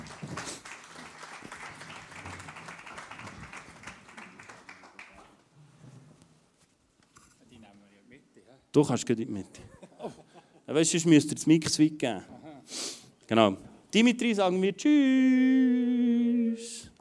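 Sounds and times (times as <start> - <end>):
audience applause: 0.0 - 5.5
speech: 8.7 - 9.8, 10.7 - 15.6
laughter: 9.6 - 10.7.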